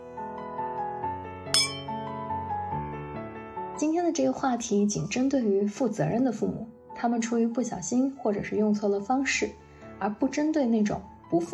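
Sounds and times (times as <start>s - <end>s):
glasses clinking in a toast: 1.6s - 2.1s
soft melodic music bed: 1.6s - 2.8s
speech: 3.8s - 11.5s.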